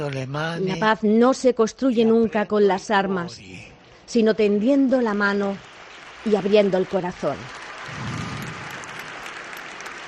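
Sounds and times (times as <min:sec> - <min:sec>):
speech: 0:00.0 - 0:08.1
crowd applause during a speech by the Pope: 0:05.2 - 0:10.0.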